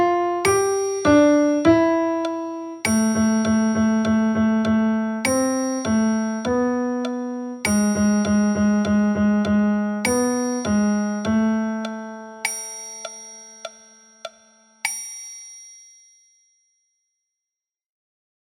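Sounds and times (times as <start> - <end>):
piano music: 0.0 - 14.4.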